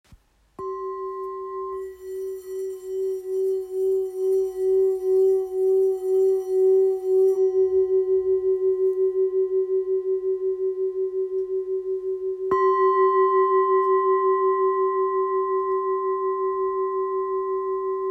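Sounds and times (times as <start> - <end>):
old bowl in F sharp: 0.5 - 18.0.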